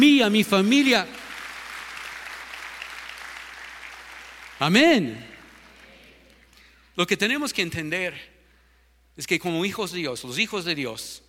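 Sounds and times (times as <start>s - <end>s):
speech: 0.0s - 1.2s, 4.6s - 5.3s, 7.0s - 8.3s, 9.2s - 11.2s
loud audience applause: 0.0s - 6.6s.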